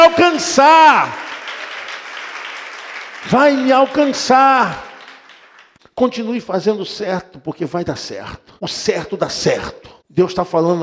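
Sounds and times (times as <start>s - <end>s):
speech: 0.1s - 1.2s, 3.2s - 4.9s, 6.0s - 10.8s
audience applauding: 0.2s - 5.8s.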